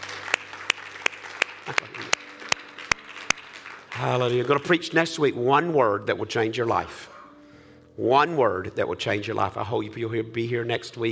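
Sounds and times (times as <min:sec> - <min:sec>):
audience clapping hands in praise: 0:00.0 - 0:05.0
speech: 0:01.7 - 0:02.0, 0:04.0 - 0:07.1, 0:08.0 - 0:11.0.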